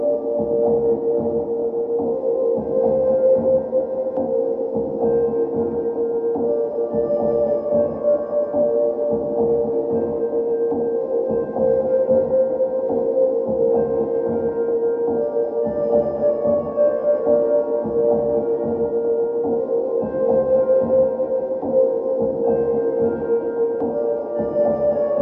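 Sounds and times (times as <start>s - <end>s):
ambient sine wave music: 0.0s - 25.2s.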